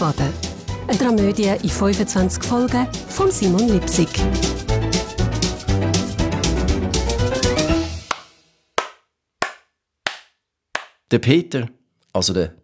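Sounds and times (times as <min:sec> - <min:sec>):
music: 0:00.0 - 0:08.7
speech: 0:00.1 - 0:04.6, 0:11.1 - 0:12.6
spanking slaps on a bottom: 0:07.4 - 0:11.0.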